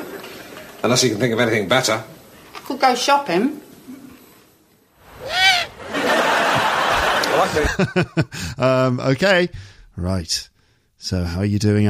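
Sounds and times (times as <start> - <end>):
speech: 0.8 - 3.7, 7.4 - 11.8
owl call: 5.1 - 5.9
laughter: 5.2 - 8.5.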